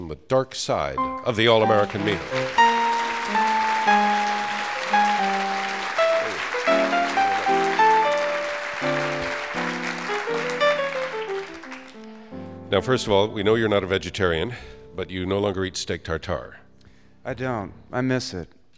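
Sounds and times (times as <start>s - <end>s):
speech: 0.1s - 2.6s, 12.7s - 16.6s, 17.2s - 18.7s
audience applauding to welcome author Eric Schlosser: 1.0s - 12.3s
tune of clear musical notes: 1.0s - 12.8s.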